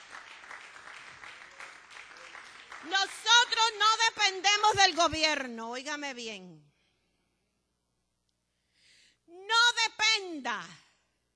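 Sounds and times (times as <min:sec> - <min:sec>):
audience applauding: 0:00.0 - 0:03.6
speech: 0:02.8 - 0:06.6, 0:09.5 - 0:10.8.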